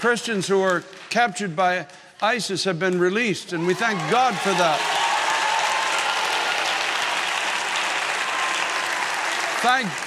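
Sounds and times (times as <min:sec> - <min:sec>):
speech: 0:00.0 - 0:05.1, 0:09.6 - 0:10.0
audience clapping hands: 0:03.6 - 0:10.0.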